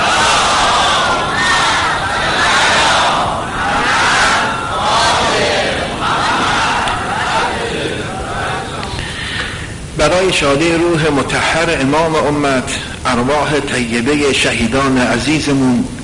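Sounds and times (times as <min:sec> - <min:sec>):
large crowd at a religious gathering chanting salawat in unison: 0:00.0 - 0:09.0
speech: 0:10.0 - 0:16.0.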